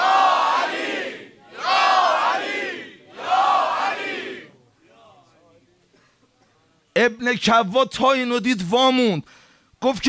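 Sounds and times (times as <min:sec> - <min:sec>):
crowd at a religious gathering shouting in unison: 0:00.0 - 0:04.6
speech: 0:07.0 - 0:10.0.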